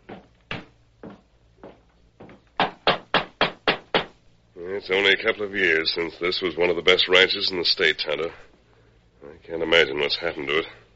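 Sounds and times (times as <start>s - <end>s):
knocking on a wooden door: 0.0s - 4.2s
speech: 4.7s - 8.5s, 9.5s - 10.8s.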